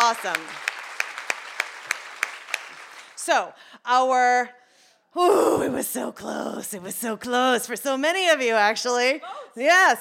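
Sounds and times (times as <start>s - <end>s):
audience applauding: 0.0s - 3.2s
speech: 0.1s - 0.7s, 3.2s - 4.6s, 5.2s - 9.9s.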